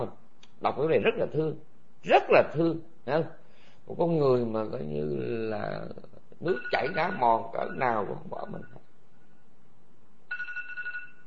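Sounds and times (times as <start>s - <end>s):
speech: 0.0s - 8.8s
mobile phone ringing: 6.5s - 8.8s, 10.3s - 11.2s.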